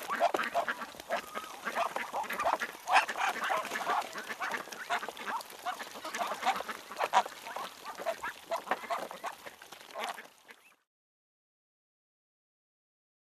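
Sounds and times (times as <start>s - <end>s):
birds calling in chorus: 0.0s - 9.4s.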